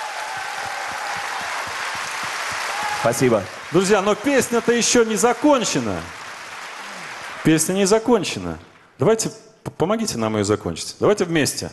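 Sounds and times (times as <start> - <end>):
applause for a conductor at a concert: 0.0 - 8.8
speech: 3.0 - 6.2, 7.4 - 11.7.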